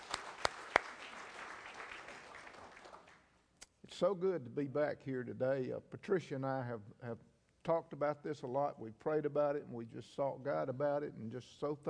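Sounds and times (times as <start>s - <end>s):
audience clapping: 0.0s - 3.3s
speech: 3.9s - 11.8s.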